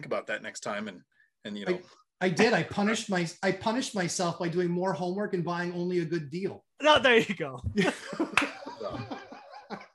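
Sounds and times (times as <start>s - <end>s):
speech: 0.0s - 9.1s
hearty laughter: 7.7s - 9.9s
loud hand clap: 8.2s - 8.7s.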